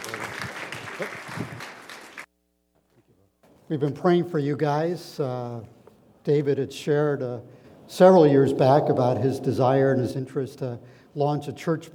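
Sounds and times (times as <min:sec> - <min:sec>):
church congregation applauding: 0:00.0 - 0:02.3
speech: 0:01.0 - 0:01.2, 0:03.7 - 0:11.9.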